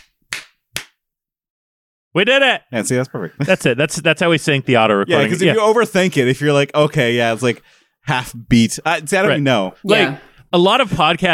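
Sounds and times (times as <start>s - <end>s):
hand claps by microphones: 0.0s - 1.0s
speech: 2.1s - 11.3s.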